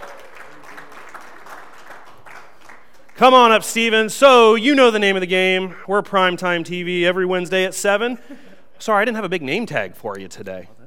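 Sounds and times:
crowd applauding: 0.0s - 3.8s
speech: 3.2s - 10.8s.

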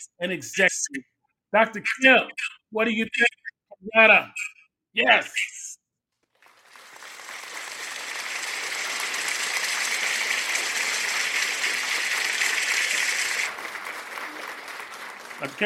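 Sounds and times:
speech: 0.2s - 5.6s, 15.4s - 15.6s
crowd cheering and applauding: 6.4s - 15.6s.

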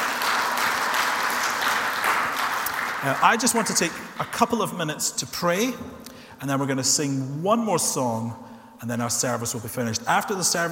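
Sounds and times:
audience applause: 0.0s - 4.0s
speech: 3.0s - 10.7s.

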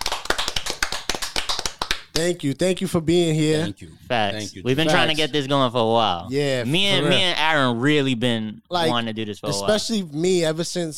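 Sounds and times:
clapping: 0.0s - 2.3s
speech: 2.2s - 10.9s.

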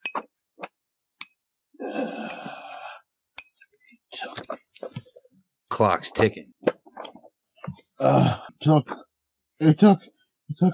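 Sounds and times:
finger tapping against a metal spear blade: 1.2s - 1.4s, 3.4s - 3.6s
speech: 5.8s - 6.6s, 8.0s - 9.0s, 9.6s - 10.7s.

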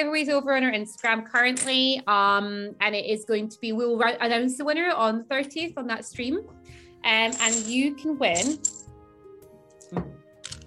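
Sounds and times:
speech: 0.0s - 8.8s, 9.9s - 10.2s
dice rattling: 7.2s - 7.8s, 8.4s - 8.8s.

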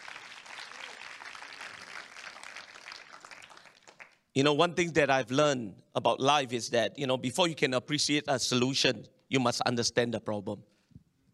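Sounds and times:
audience clapping hands: 0.0s - 4.3s
speech: 4.4s - 10.7s.

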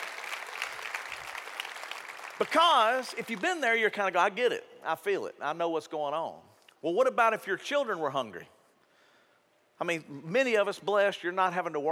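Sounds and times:
crowd clapping: 0.0s - 3.8s
speech: 2.4s - 8.6s, 9.8s - 11.9s.

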